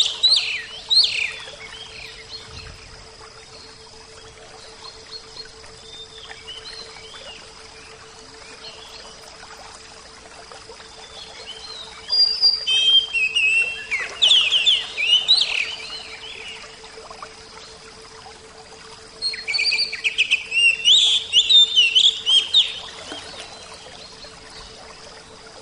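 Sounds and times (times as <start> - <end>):
Oriental magpie-robin song: 0.0 - 9.2, 10.9 - 16.7, 19.2 - 24.9.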